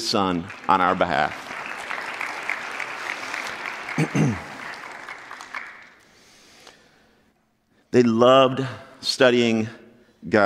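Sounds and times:
audience clapping: 0:00.0 - 0:06.2
speech: 0:00.1 - 0:01.4, 0:04.0 - 0:04.5, 0:07.9 - 0:10.4.

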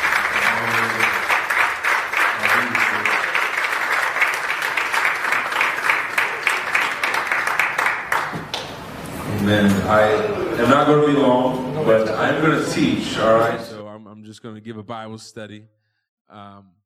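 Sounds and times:
audience applause: 0:00.0 - 0:08.8
speech: 0:09.5 - 0:13.7, 0:14.4 - 0:16.8.

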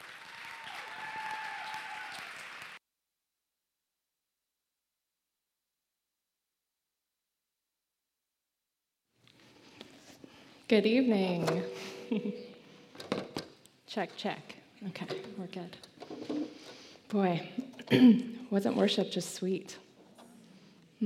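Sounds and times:
audience applauding a speaker at a worship gathering: 0:00.0 - 0:02.8
speech: 0:10.7 - 0:12.5, 0:14.0 - 0:16.4, 0:17.1 - 0:19.8
laughter: 0:11.8 - 0:12.6.

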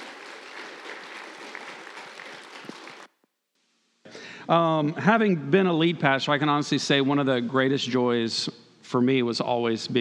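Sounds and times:
audience applause: 0:00.0 - 0:03.2
speech: 0:04.5 - 0:10.0.

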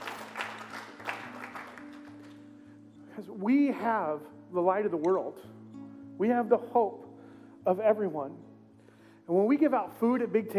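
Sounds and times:
audience clapping: 0:00.0 - 0:02.5
speech: 0:03.2 - 0:05.6, 0:06.2 - 0:07.0, 0:07.6 - 0:08.4, 0:09.3 - 0:10.5.

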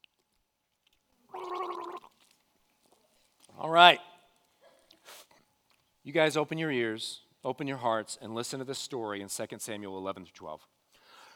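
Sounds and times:
person drinking water: 0:01.3 - 0:02.4
speech: 0:03.6 - 0:04.1, 0:06.1 - 0:10.8.

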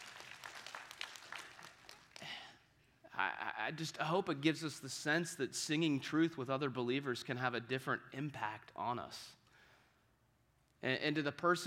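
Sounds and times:
audience clapping: 0:00.0 - 0:02.5
speech: 0:03.6 - 0:09.4, 0:10.8 - 0:11.6.

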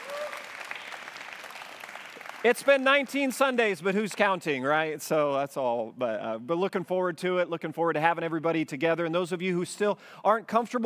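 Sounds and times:
crowd applauding enthusiastically: 0:00.0 - 0:03.6
speech: 0:02.4 - 0:10.8.

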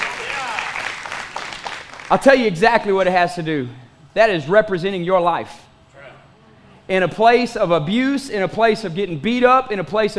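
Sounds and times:
audience clapping: 0:00.0 - 0:02.4
speech: 0:02.1 - 0:05.7, 0:06.9 - 0:10.1.

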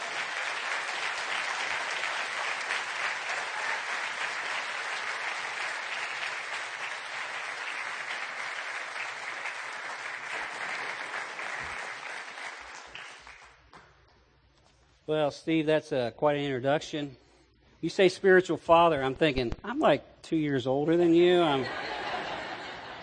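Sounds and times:
church congregation at New Life Church applauding a guest preacher: 0:00.0 - 0:13.7
speech: 0:15.1 - 0:17.2, 0:17.8 - 0:21.9
laughter: 0:21.4 - 0:23.0.

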